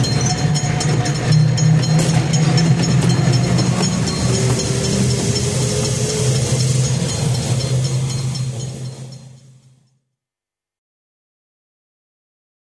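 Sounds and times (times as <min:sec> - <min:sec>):
tram: 0:00.0 - 0:10.0.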